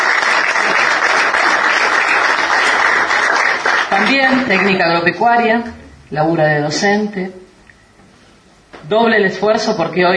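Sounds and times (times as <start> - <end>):
audience applause: 0.0 - 4.8
speech: 4.1 - 7.4, 8.8 - 10.1.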